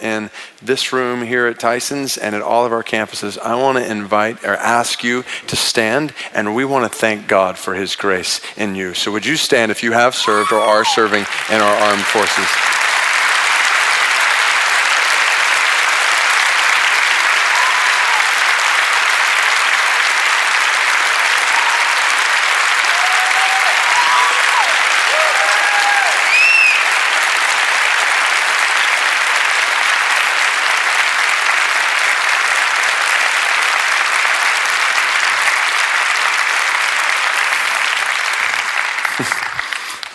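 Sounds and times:
speech: 0:00.1 - 0:12.8
audience applauding: 0:10.2 - 0:40.1.

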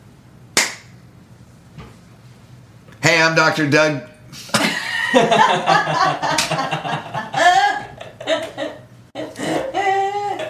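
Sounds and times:
single hand clap as cue: 0:00.6 - 0:00.9
speech: 0:03.0 - 0:04.4, 0:05.1 - 0:07.1
laughter: 0:04.6 - 0:10.4.

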